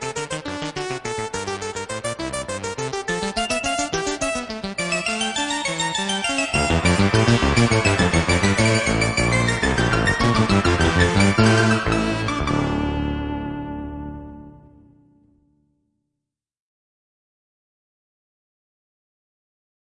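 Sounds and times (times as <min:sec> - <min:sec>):
two-part invention: 0:00.3 - 0:15.2.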